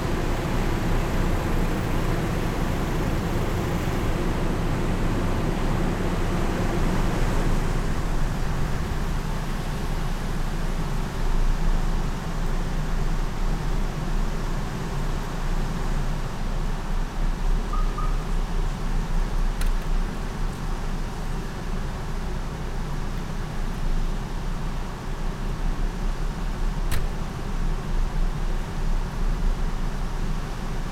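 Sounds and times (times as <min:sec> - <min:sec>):
supermarket air conditioning in Sergiyev Posad: 0:00.0 - 0:30.9.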